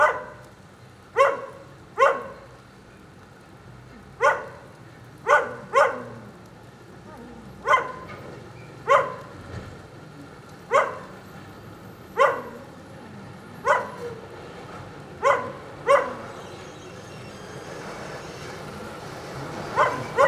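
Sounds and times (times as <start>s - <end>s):
dog barking: 0.0s - 0.4s, 1.2s - 2.5s, 4.2s - 6.3s, 7.2s - 9.4s, 10.6s - 11.2s, 12.1s - 14.4s, 15.2s - 16.6s, 19.6s - 20.2s.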